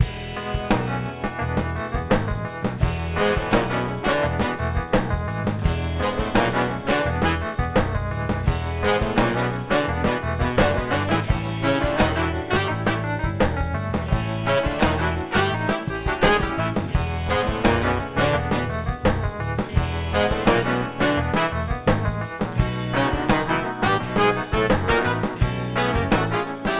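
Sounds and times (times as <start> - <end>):
happy rock music bed: 0.0 - 26.7.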